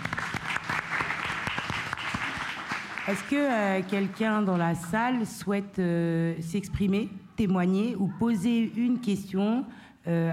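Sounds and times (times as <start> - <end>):
audience applauding: 0.0 - 4.6
speech: 3.1 - 10.3.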